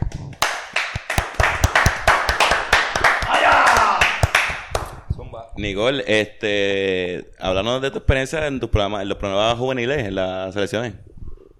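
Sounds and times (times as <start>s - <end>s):
applause sound effect: 0.1s - 5.0s
speech: 5.6s - 11.1s.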